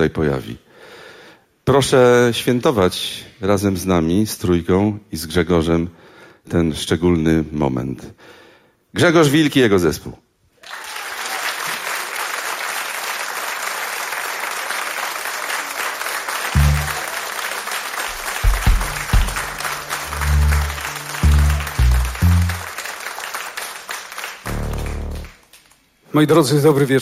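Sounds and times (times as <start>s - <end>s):
speech: 0.0s - 0.6s, 1.7s - 10.2s, 26.2s - 27.0s
audience applause: 10.6s - 25.6s.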